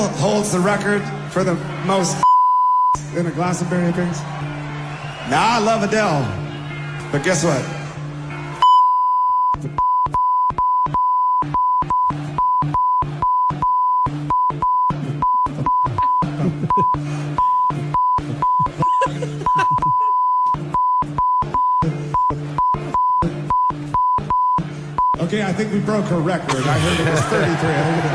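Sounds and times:
speech: 0.0 - 2.2, 3.1 - 4.5, 5.3 - 6.4, 7.1 - 7.8, 9.6 - 9.8, 25.9 - 28.1
censor bleeps over audio: 2.2 - 3.0, 8.6 - 18.8, 19.7 - 25.2
laughter: 15.0 - 20.5, 26.5 - 28.1.

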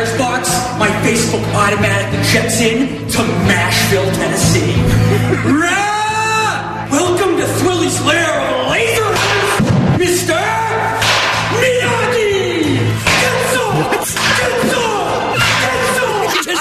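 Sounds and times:
busy background: 0.0 - 16.5
speech: 1.0 - 6.0, 7.9 - 9.2
laughter: 4.6 - 6.2, 11.8 - 16.5
wooden baseball bat hitting balls: 8.9 - 10.0, 10.8 - 12.1, 12.8 - 16.1.

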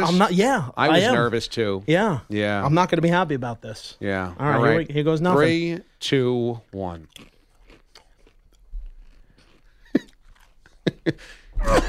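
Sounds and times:
speech: 0.0 - 7.3, 11.0 - 11.8
man chewing noisily: 7.0 - 11.2
man gagging on spicy food: 11.2 - 11.8
man coughing on spicy food: 11.3 - 11.8.

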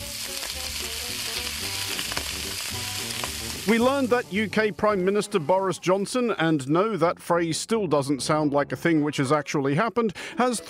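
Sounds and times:
sausages sizzling in a pan: 0.0 - 6.1
speech: 3.7 - 10.6.

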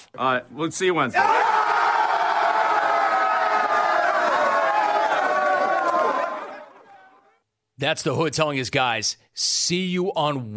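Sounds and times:
speech: 0.1 - 1.6, 7.8 - 10.5
New England Patriots players whooping and laughing: 1.2 - 7.1.

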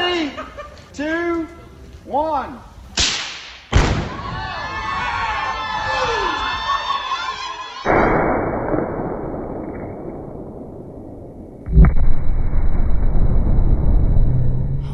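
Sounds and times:
laughter: 0.1 - 0.9
speech: 0.4 - 2.7
rifle shot from 200 yards: 3.0 - 4.2, 7.9 - 12.8
exploding target hit by a rifle shot: 3.0 - 4.3, 7.9 - 14.9
people exclaiming: 4.2 - 7.9.

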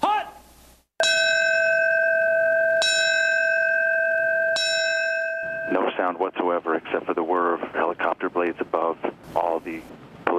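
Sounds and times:
New York City Fire Department bell ringing for fallen firefighter: 1.0 - 6.2
speech: 6.0 - 10.3.

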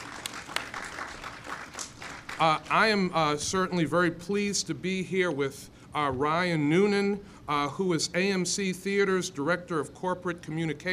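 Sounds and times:
audience applause: 0.0 - 2.8
speech: 2.4 - 10.9.

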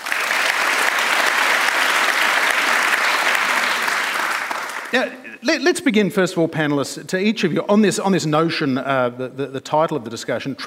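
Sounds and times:
audience applause welcoming panellists to a discussion: 0.0 - 5.4
speech: 4.9 - 10.6.

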